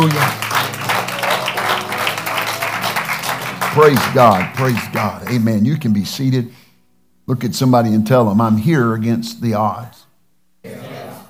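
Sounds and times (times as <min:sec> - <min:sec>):
speech: 0:00.0 - 0:00.4, 0:03.8 - 0:06.6, 0:07.3 - 0:10.0
audience clapping hands: 0:00.0 - 0:05.8.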